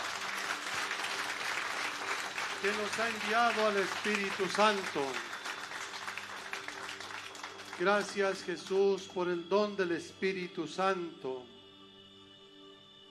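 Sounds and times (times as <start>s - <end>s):
audience applause: 0.0s - 8.8s
speech: 2.6s - 5.3s, 7.8s - 11.5s.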